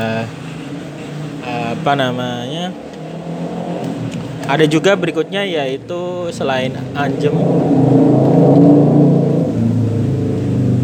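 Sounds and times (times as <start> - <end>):
speech: 0.0 - 0.5, 1.4 - 3.6, 4.5 - 9.3
motorcycle engine revving: 0.0 - 10.8.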